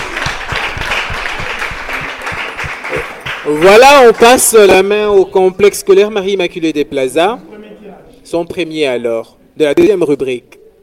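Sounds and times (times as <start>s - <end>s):
crowd applause: 0.0s - 4.6s
speech: 3.4s - 7.5s, 8.3s - 10.6s.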